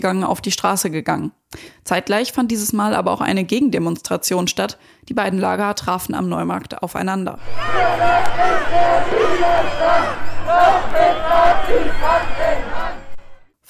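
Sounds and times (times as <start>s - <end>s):
speech: 0.0s - 12.9s
shrill whistles: 7.4s - 13.4s
protest crowd booing: 7.4s - 13.5s.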